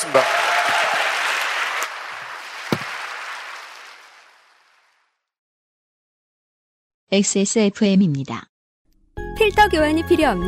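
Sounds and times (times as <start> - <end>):
audience applause: 0.0 - 5.1
speech: 7.1 - 8.5, 9.4 - 10.4.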